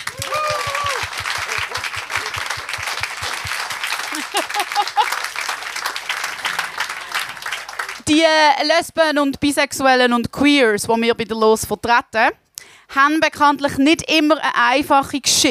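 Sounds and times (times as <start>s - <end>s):
audience applause: 0.0s - 8.1s
people laughing and talking: 0.4s - 5.4s
speech: 8.1s - 15.4s.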